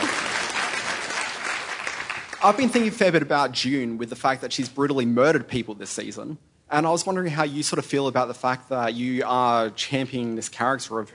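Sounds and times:
audience round of applause: 0:00.0 - 0:02.8
speech: 0:02.4 - 0:11.1.

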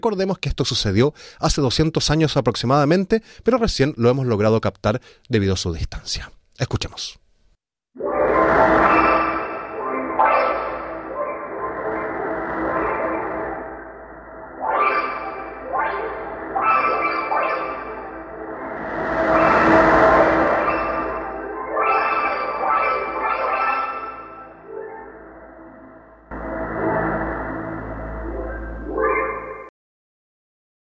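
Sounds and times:
speech: 0:00.0 - 0:07.2
space sound of a black hole feeding: 0:08.0 - 0:29.7.

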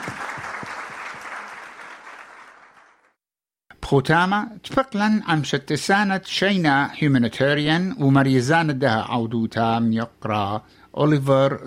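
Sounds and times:
round of applause: 0:00.0 - 0:03.2
speech: 0:03.9 - 0:11.6.

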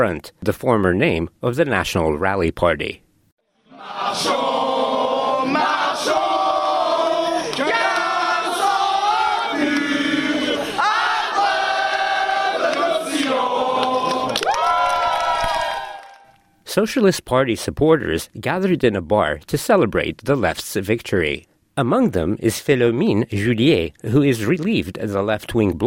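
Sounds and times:
speech: 0:00.0 - 0:03.0, 0:03.8 - 0:04.6, 0:16.8 - 0:25.8
French Green Party supporters singing the national anthem on election night: 0:03.6 - 0:14.5
French Green Party supporters cheering and shouting on election night: 0:05.5 - 0:16.4.

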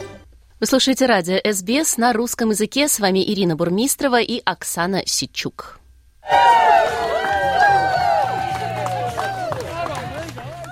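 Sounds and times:
music at wedding: 0:00.0 - 0:00.2, 0:06.3 - 0:10.6
speech: 0:00.6 - 0:07.8
joyful applause at wedding: 0:06.2 - 0:10.6.

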